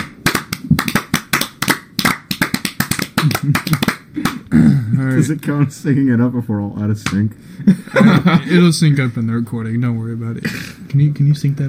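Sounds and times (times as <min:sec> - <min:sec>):
several people clapping together for audio sync: 0:00.0 - 0:04.5
speech: 0:03.4 - 0:03.8, 0:05.1 - 0:11.6
laughter: 0:07.6 - 0:08.8.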